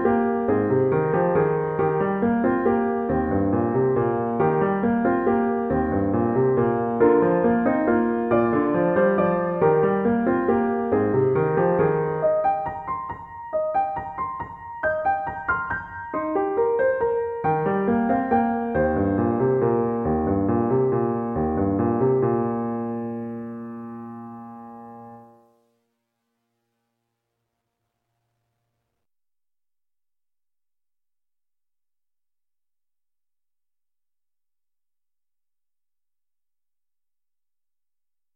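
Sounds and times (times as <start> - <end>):
solo piano: 0.0 - 25.8.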